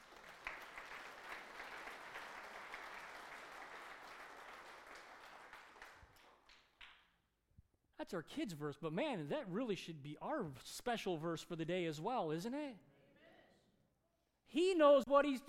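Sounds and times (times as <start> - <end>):
audience clapping: 0.0 - 7.1
speech: 8.0 - 12.9, 14.5 - 15.4.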